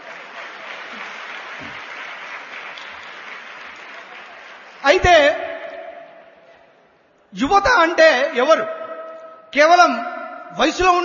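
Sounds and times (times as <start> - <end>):
faint applause from an audience at a Sathya Sai youth gathering: 0.0 - 4.9
speech: 4.9 - 5.5, 7.3 - 8.8, 9.5 - 11.0.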